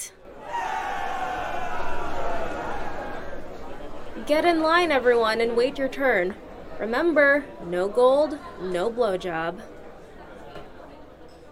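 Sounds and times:
crowd cheering: 0.0 - 4.1
speech: 4.2 - 9.8.

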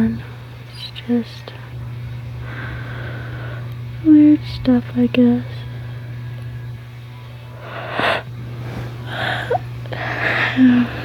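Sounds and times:
speech: 1.0 - 1.6, 4.0 - 5.5
yawning: 9.0 - 11.0.

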